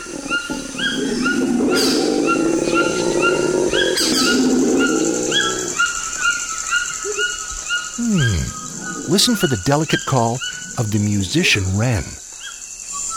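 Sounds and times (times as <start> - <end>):
howler monkey growling: 0.0 - 6.0, 7.9 - 12.2
speech: 9.1 - 12.2.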